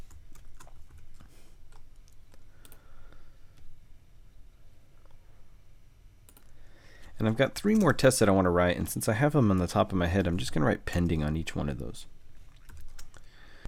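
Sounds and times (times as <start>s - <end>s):
typing code on a computer keyboard while writing a unit test: 0.0s - 2.8s, 12.6s - 13.6s
speech: 7.2s - 12.2s.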